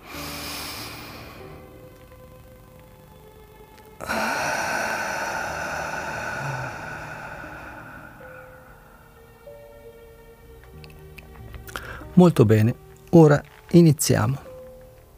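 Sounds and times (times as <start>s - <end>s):
deep inhalation during chakra meditation: 0.0s - 1.6s, 4.0s - 9.5s, 11.7s - 12.1s
speech: 4.0s - 4.3s, 12.2s - 14.4s.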